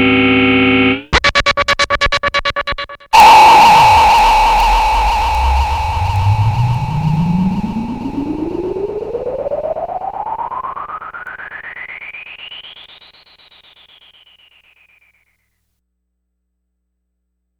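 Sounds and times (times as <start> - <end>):
EDM sound effect: 0.0 - 14.4.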